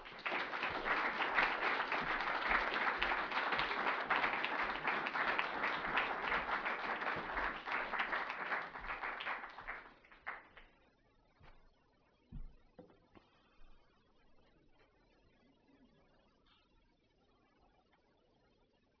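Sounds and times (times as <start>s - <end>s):
audience applause at a Hay event welcoming speakers: 0.0s - 10.6s.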